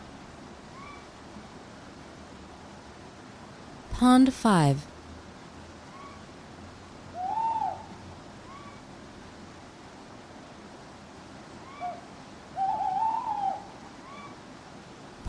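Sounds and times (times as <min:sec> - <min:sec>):
constant low hiss: 0:00.0 - 0:15.2
speech: 0:04.0 - 0:04.9
owl hooting: 0:05.9 - 0:06.3, 0:07.1 - 0:08.9, 0:11.6 - 0:14.4.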